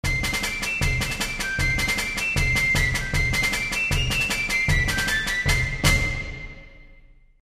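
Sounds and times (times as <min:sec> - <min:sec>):
military parade: 0:00.0 - 0:06.9.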